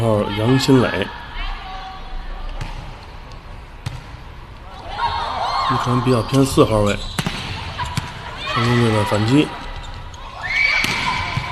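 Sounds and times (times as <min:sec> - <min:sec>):
speech: 0:00.0 - 0:01.2, 0:05.7 - 0:07.2, 0:08.6 - 0:09.6
arena crowd noise: 0:00.0 - 0:11.5
hand slapping volleyball on serve: 0:07.2 - 0:08.2, 0:10.8 - 0:11.5.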